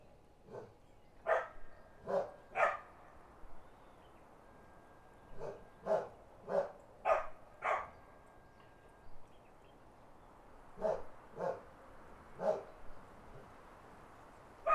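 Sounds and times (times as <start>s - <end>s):
country dogs barking: 0.5s - 2.9s, 5.4s - 7.9s, 10.8s - 11.7s, 12.4s - 12.7s.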